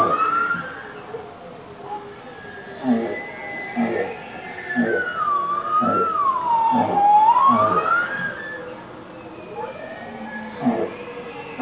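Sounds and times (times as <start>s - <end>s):
bowhead whale song: 2.0s - 8.8s, 9.6s - 11.6s.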